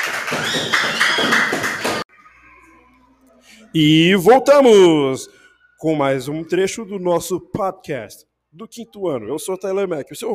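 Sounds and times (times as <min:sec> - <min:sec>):
applause: 0:00.0 - 0:02.1
speech: 0:03.7 - 0:10.3.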